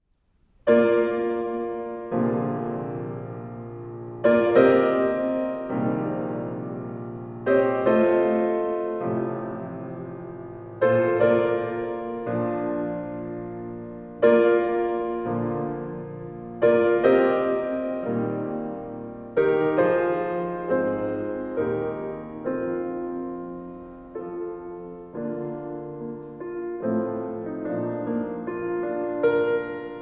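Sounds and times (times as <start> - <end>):
piano improvisation: 0.6 - 30.0.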